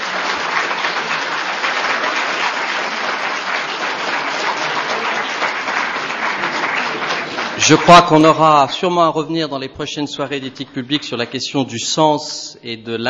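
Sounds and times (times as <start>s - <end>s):
audience applause: 0.0s - 9.0s
speech: 7.7s - 13.0s.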